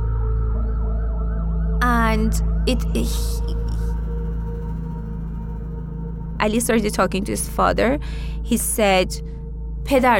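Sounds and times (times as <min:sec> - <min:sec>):
ambulance siren: 0:00.0 - 0:05.4
speech: 0:02.1 - 0:03.6, 0:06.4 - 0:10.1.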